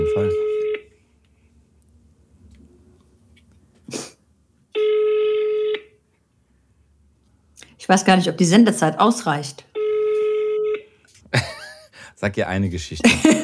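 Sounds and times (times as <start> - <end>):
outgoing phone call ringback tones: 0.0 - 0.9, 4.8 - 5.9, 9.8 - 10.9
speech: 0.2 - 0.5, 7.9 - 9.7, 12.2 - 13.4.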